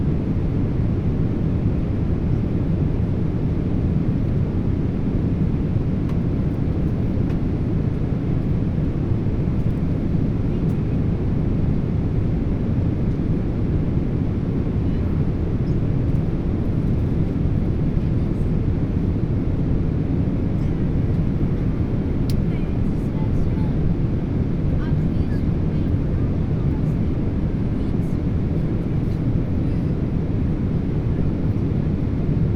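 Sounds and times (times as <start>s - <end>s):
Boeing 777 inflight cabin ambience: 0.0s - 32.5s.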